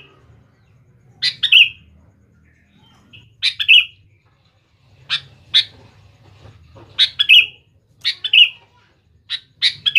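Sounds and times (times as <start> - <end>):
sooty-headed bulbul calling: 1.1 - 4.1, 7.0 - 8.6, 9.3 - 9.9.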